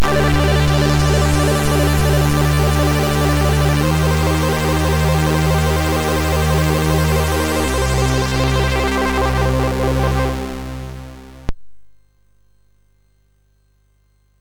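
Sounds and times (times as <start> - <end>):
MOS6581R3 sound chip music: 0.0 - 11.5.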